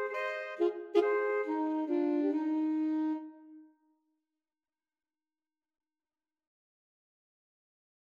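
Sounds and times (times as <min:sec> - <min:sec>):
alto saxophone trio: 0:00.0 - 0:03.5.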